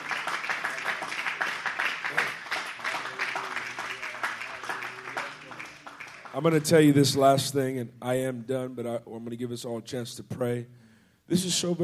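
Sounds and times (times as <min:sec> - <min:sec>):
crowd clapping hands: 0:00.0 - 0:07.2
speech: 0:06.4 - 0:11.8.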